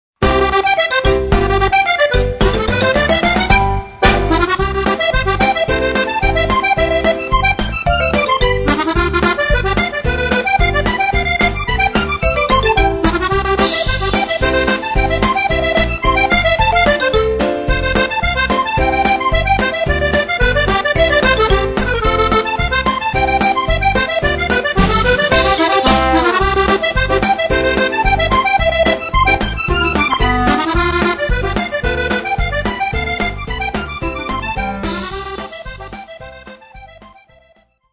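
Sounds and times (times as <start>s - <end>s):
Jura polka music: 0.2s - 37.9s.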